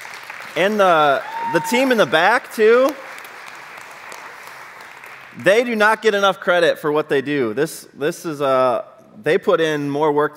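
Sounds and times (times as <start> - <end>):
audience applause for the band: 0.0 - 5.6
speech: 0.6 - 3.0, 5.4 - 10.3.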